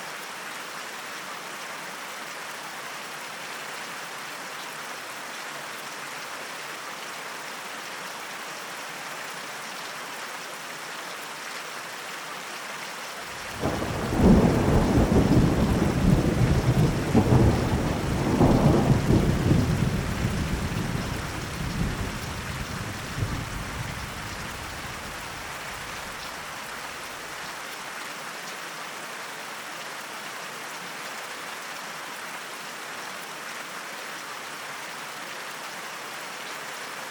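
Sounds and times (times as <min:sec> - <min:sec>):
thunderstorm: 0:13.5 - 0:25.2.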